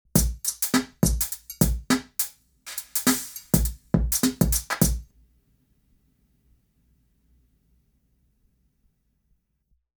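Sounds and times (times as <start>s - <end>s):
drum at Newgrange: 0.0s - 5.0s.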